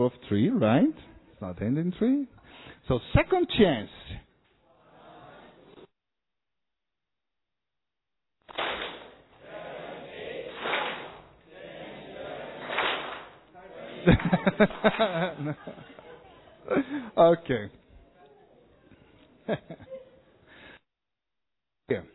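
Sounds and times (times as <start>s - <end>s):
speech: 0.0s - 4.2s, 14.0s - 16.0s, 16.7s - 17.8s, 19.5s - 20.0s, 21.9s - 22.1s
hand clapping: 8.5s - 9.3s, 10.4s - 11.3s, 12.6s - 16.1s
laughter: 9.4s - 10.7s, 11.5s - 12.8s, 13.5s - 17.2s, 18.9s - 20.5s.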